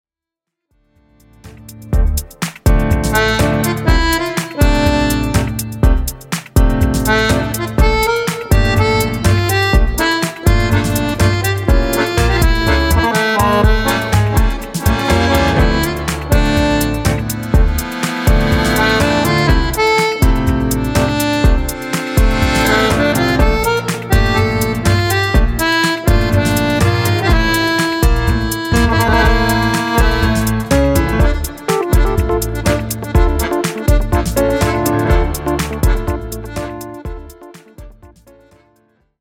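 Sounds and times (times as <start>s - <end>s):
tango music: 1.4s - 38.5s.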